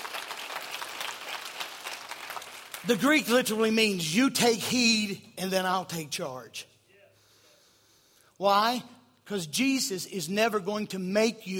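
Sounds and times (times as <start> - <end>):
congregation clapping in praise during a church service: 0.0 - 3.7
speech: 2.8 - 6.7, 8.4 - 11.5.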